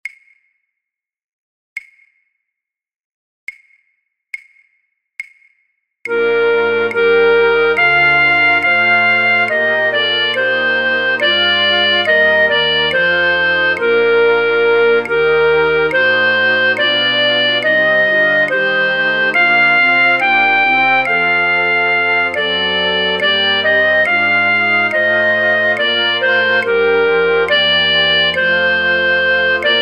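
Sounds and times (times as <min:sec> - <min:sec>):
flute orchestra: 0:06.1 - 0:29.8.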